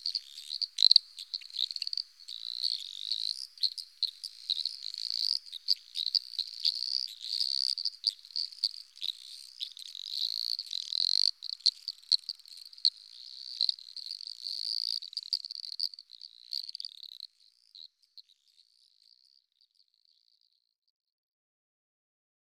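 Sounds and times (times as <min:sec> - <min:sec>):
eastern dwarf frog calling: 0:00.0 - 0:13.9.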